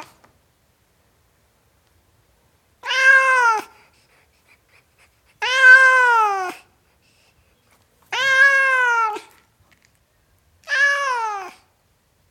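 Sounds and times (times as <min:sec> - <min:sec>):
tom cat meowing: 0:02.8 - 0:03.8, 0:05.4 - 0:06.7, 0:08.1 - 0:09.3, 0:10.6 - 0:11.7.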